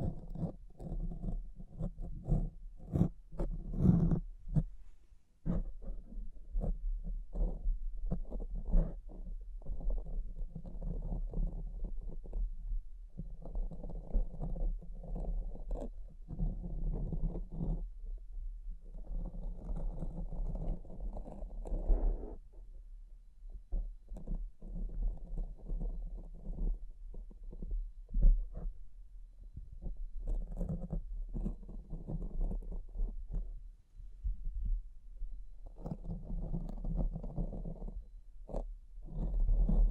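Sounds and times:
muffled brushing and scratching: 0.0s - 22.7s, 23.5s - 28.9s, 29.6s - 39.9s.

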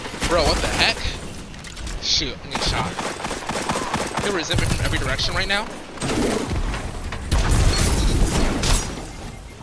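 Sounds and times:
speech: 0.3s - 1.1s, 2.2s - 3.1s, 4.3s - 6.5s
spike grenade explosion in the video game Destiny 2: 4.3s - 9.3s.

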